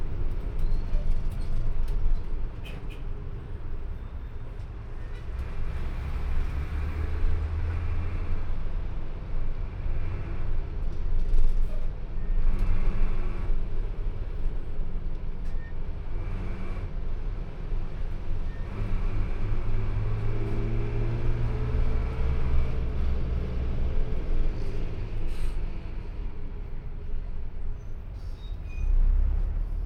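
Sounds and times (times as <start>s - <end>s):
bus interior ambience: 0.0s - 29.8s.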